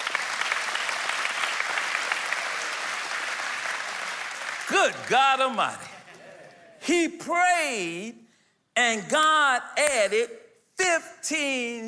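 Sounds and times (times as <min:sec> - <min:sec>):
audience hand clapping: 0:00.0 - 0:06.8
speech: 0:04.7 - 0:05.9, 0:06.8 - 0:08.2, 0:08.8 - 0:11.8.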